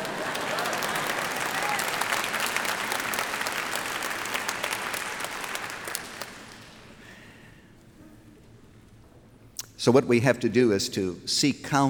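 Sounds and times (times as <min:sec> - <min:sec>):
audience applause: 0:00.0 - 0:07.0
speech: 0:09.8 - 0:11.8.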